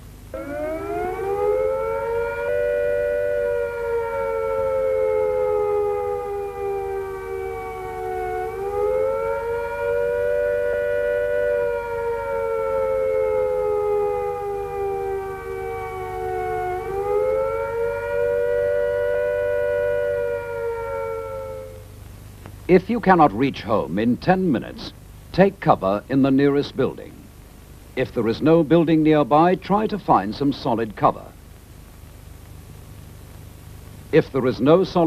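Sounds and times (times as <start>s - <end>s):
civil defence attack warning siren wailing: 0.3s - 22.0s
speech: 22.7s - 27.2s, 28.0s - 31.2s, 34.1s - 35.0s.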